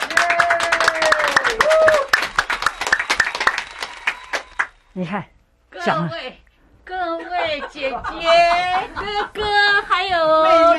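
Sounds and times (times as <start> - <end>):
gliding vocal whoops and cheers: 0.0 - 2.3
audience applause: 0.0 - 4.7
speech: 5.0 - 10.7
laughter: 7.1 - 10.0.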